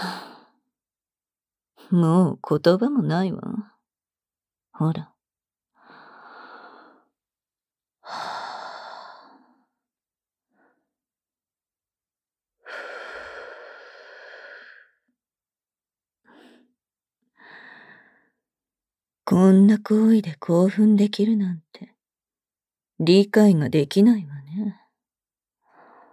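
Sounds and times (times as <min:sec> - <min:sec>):
speech: 0:01.9 - 0:03.7, 0:04.8 - 0:05.1, 0:19.3 - 0:21.9, 0:23.0 - 0:24.8
woman breathing with breathy exhales and sighs: 0:05.8 - 0:07.2, 0:08.0 - 0:09.8, 0:12.6 - 0:15.0, 0:17.4 - 0:18.4, 0:25.6 - 0:26.1.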